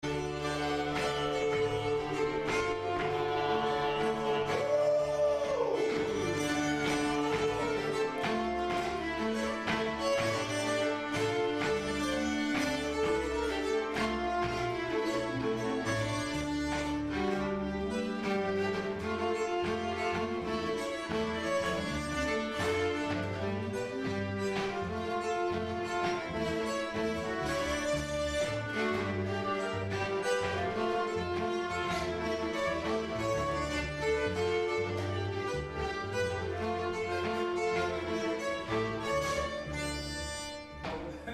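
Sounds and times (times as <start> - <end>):
nyckelharpa playing a polska: 0.0 - 41.3.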